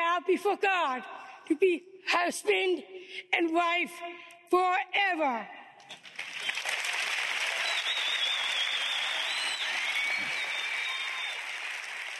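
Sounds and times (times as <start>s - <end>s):
speech: 0.2s - 5.6s
audience applause: 6.0s - 12.1s.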